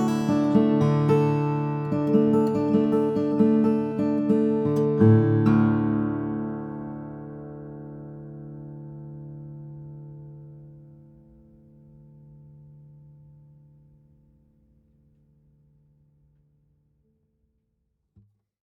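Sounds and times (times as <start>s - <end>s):
steel-string flattop guitar: 0.0s - 14.2s.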